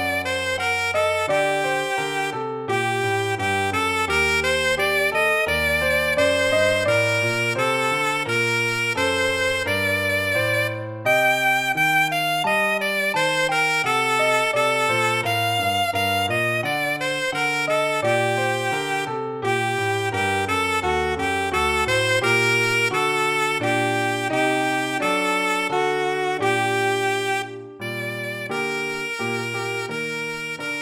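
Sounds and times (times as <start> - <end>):
alto saxophone: 0.0 - 30.8
piano: 0.0 - 30.8.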